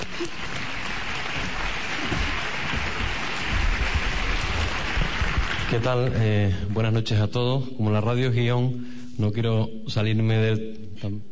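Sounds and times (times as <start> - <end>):
audience applause: 0.0 - 6.4
speech: 0.2 - 0.7, 5.7 - 11.2.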